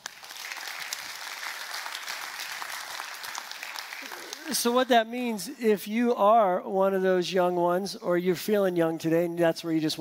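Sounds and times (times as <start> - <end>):
audience clapping: 0.0 - 4.9
speech: 4.5 - 9.9.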